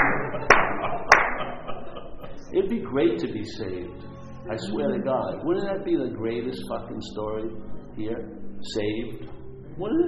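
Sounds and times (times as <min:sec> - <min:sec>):
hand clapping: 0:00.0 - 0:02.4
laughter: 0:00.0 - 0:02.5, 0:04.6 - 0:05.6
speech: 0:02.6 - 0:10.0.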